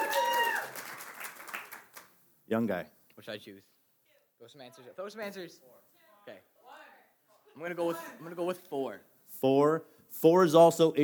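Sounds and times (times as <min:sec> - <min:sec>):
adults cheering: 0:00.0 - 0:01.7
speech: 0:02.5 - 0:03.7, 0:04.4 - 0:06.5, 0:07.6 - 0:11.0.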